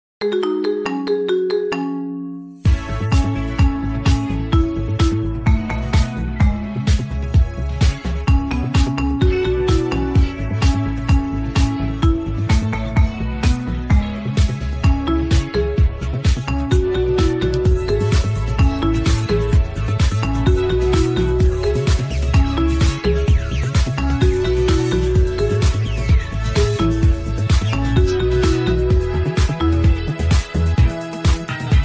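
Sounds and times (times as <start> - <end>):
marimba remix: 0.2 - 31.8.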